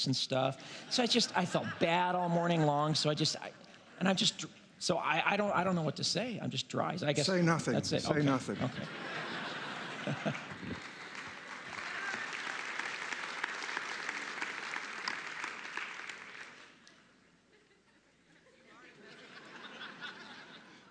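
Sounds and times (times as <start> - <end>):
speech: 0.0 - 9.2, 10.0 - 10.9
laughter: 0.8 - 2.8, 8.1 - 12.1, 17.5 - 20.8
audience applause: 9.1 - 16.8.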